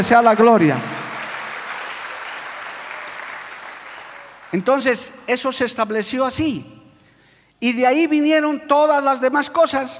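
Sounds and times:
speech: 0.0 - 0.9, 4.5 - 6.8, 7.6 - 9.9
audience applause: 0.0 - 4.7.

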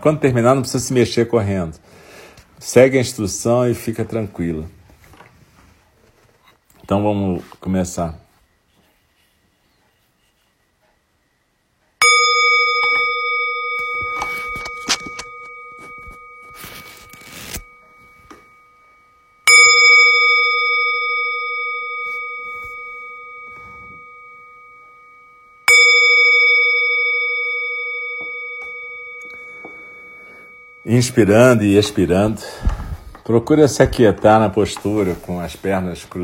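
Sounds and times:
speech: 0.0 - 2.0, 2.6 - 4.8, 6.9 - 8.2, 30.9 - 36.2
meditation bell struck to begin session: 12.0 - 36.2.

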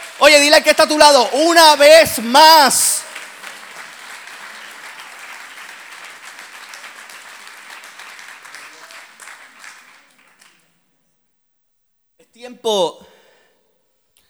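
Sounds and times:
audience applauding loudly: 0.0 - 10.6
speech: 0.2 - 3.0, 12.6 - 13.1.

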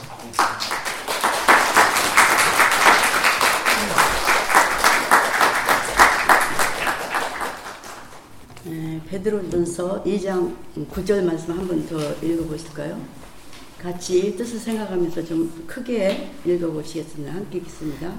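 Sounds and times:
audience applause welcoming a speaker: 0.0 - 8.3
speech: 9.1 - 13.2, 13.8 - 18.1.

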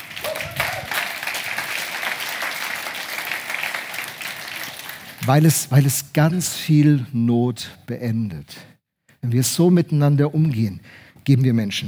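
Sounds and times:
audience applauding: 0.0 - 5.8
speech: 5.3 - 11.8.

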